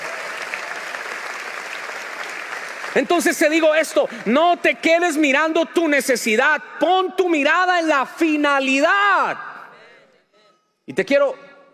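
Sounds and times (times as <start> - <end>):
church congregation applauding during a sermon: 0.0 - 5.5
speech: 2.9 - 9.5, 10.9 - 11.4.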